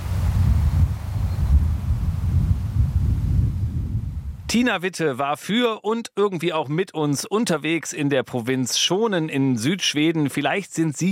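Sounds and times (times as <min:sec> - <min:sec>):
distant sea surf: 0:00.0 - 0:03.2
wind through grasses: 0:00.0 - 0:04.5
speech: 0:04.5 - 0:11.1.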